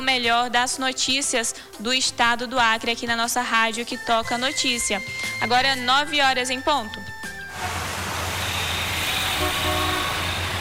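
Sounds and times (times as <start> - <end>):
speech: 0.2 - 7.8
traffic sound effect: 7.5 - 10.6.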